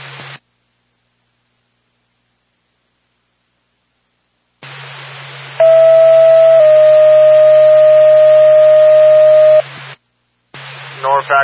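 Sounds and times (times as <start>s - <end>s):
ambulance dispatch alert tone: 5.6s - 9.6s.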